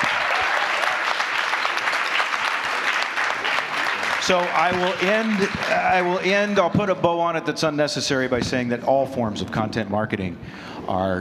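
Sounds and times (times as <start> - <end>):
applause: 0.0 - 6.6
speech: 4.3 - 11.1.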